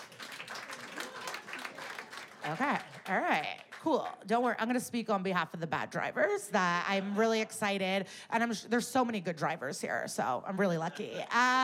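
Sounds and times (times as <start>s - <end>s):
audience clapping: 0.0s - 4.2s
speech: 2.4s - 11.6s.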